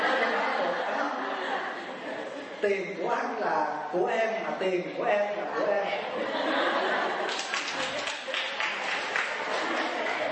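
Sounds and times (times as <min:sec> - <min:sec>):
laughter: 0:00.0 - 0:02.6, 0:05.3 - 0:10.3
speech: 0:02.6 - 0:08.1
audience applauding: 0:07.2 - 0:10.3.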